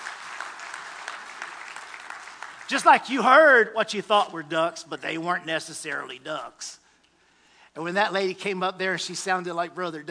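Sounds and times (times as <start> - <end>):
crowd audience applause: 0.0 - 3.5
speech: 2.7 - 6.8, 7.8 - 10.0.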